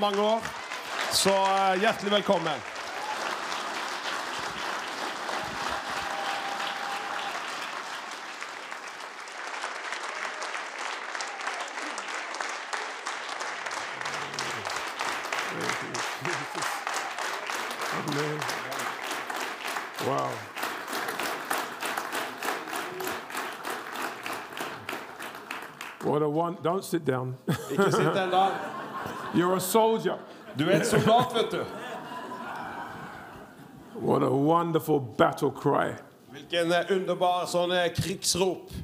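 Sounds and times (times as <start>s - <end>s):
speech: 0.0s - 2.7s, 26.6s - 28.7s, 29.3s - 31.8s, 34.1s - 38.8s
audience standing applause: 0.0s - 26.0s, 30.6s - 33.6s
laughter: 13.9s - 19.0s, 27.5s - 34.0s.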